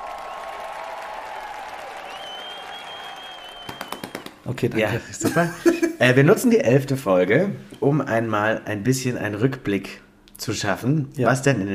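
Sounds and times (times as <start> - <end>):
audience applause: 0.0 - 4.4
speech: 4.5 - 11.7.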